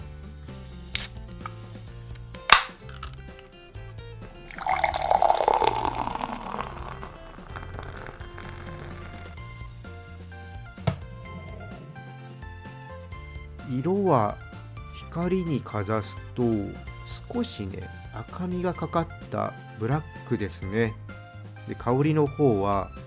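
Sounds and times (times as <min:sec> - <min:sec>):
beer being opened and poured: 0:01.0 - 0:01.2, 0:02.4 - 0:03.5, 0:04.2 - 0:09.4
speech: 0:14.1 - 0:14.4, 0:15.2 - 0:21.0, 0:21.7 - 0:23.0.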